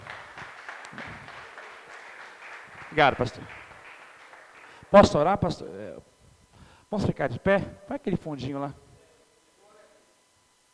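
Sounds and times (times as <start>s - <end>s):
crowd clapping in a reverberant room: 0.0s - 5.4s
speech: 2.9s - 3.6s, 4.9s - 6.1s, 6.9s - 8.8s.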